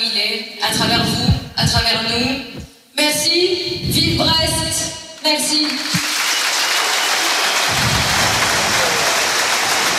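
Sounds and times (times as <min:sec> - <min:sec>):
speech: 0:00.2 - 0:06.1
stadium crowd applause: 0:05.6 - 0:09.9.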